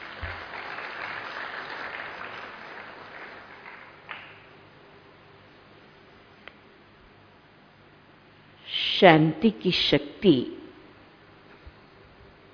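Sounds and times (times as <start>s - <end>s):
audience clapping: 0.0s - 4.5s
speech: 9.0s - 10.6s.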